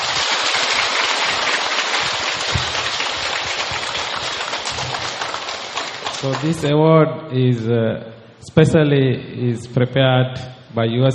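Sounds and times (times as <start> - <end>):
crowd applause: 0.0 - 6.7
speech: 6.2 - 11.1.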